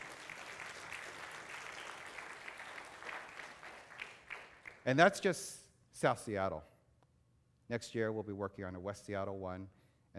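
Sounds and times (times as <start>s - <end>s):
audience clapping: 0.0s - 5.2s
speech: 4.8s - 6.7s, 7.7s - 10.1s.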